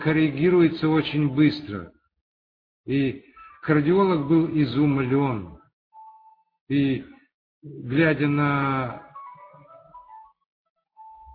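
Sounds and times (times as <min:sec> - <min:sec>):
speech: 0:00.0 - 0:02.0, 0:02.9 - 0:05.6, 0:06.7 - 0:09.1
mobile phone ringtone: 0:09.0 - 0:10.4.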